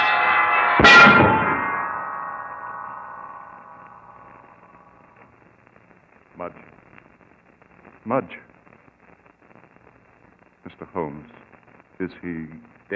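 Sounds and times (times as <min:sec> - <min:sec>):
heavy church bell falling and crashing: 0:00.0 - 0:05.0
speech: 0:08.1 - 0:08.4, 0:12.0 - 0:12.9.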